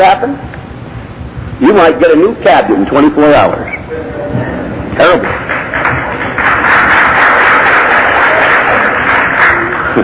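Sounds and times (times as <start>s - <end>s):
speech: 0.0s - 0.6s, 1.6s - 4.2s, 5.0s - 5.5s
audience clapping: 5.0s - 10.0s.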